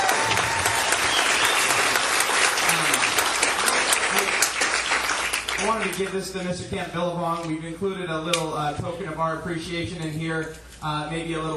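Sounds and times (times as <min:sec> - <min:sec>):
audience applause: 0:00.0 - 0:06.1
speech: 0:05.7 - 0:11.5.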